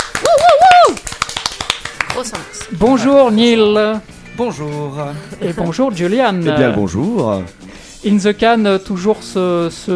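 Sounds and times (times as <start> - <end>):
sparse applause for a musical duo: 0.0 - 2.0
speech: 2.2 - 9.9.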